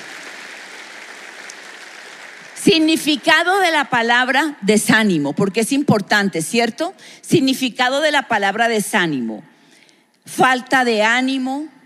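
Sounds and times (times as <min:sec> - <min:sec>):
audience applause: 0:00.0 - 0:03.2
speech: 0:02.6 - 0:09.5, 0:10.3 - 0:11.8.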